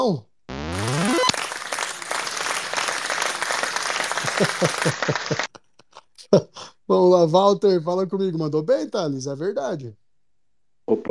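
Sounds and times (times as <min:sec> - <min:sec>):
speech: 0:00.0 - 0:00.3, 0:04.4 - 0:05.5, 0:06.3 - 0:10.0, 0:10.9 - 0:11.0
quick rising electronic tone: 0:00.5 - 0:01.4
crowd applause: 0:00.7 - 0:05.6
laughter: 0:01.9 - 0:06.7.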